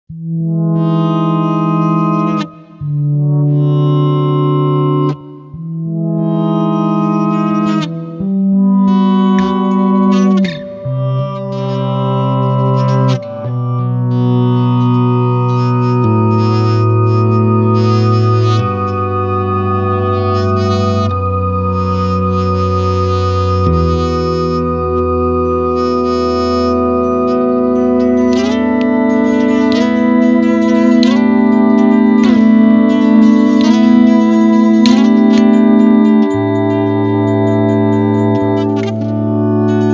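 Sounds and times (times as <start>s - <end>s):
Moog synthesizer: 0.2s - 39.9s.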